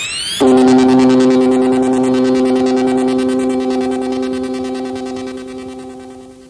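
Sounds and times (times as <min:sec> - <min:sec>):
musical stinger: 0:00.4 - 0:06.4.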